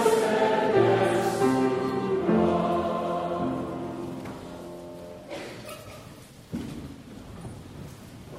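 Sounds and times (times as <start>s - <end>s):
hymn: 0.0s - 4.9s.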